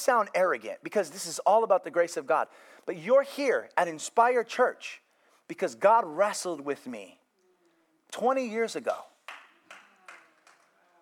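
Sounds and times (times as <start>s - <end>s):
speech: 0.0s - 7.2s, 8.1s - 9.1s
audience hand clapping: 9.2s - 10.9s.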